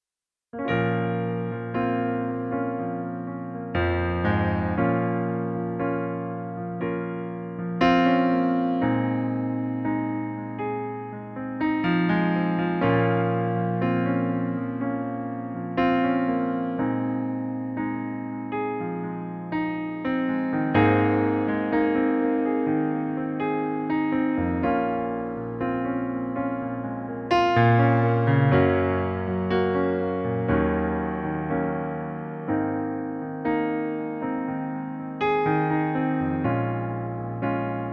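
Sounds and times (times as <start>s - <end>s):
piano playing in B flat minor: 0.6s - 37.9s.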